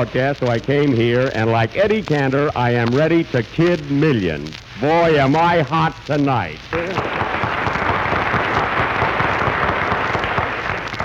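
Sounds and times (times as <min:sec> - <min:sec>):
speech: 0:00.0 - 0:07.4
studio audience applause: 0:06.7 - 0:11.0.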